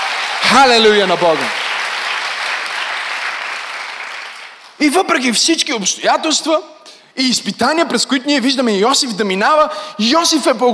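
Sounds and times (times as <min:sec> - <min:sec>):
audience applause: 0:00.0 - 0:04.8
speech: 0:00.5 - 0:01.6, 0:04.8 - 0:10.7.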